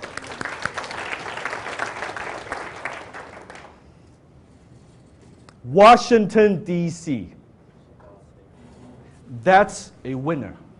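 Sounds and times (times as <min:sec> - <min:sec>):
audience round of applause: 0:00.0 - 0:03.8
speech: 0:05.7 - 0:07.4, 0:09.4 - 0:10.6.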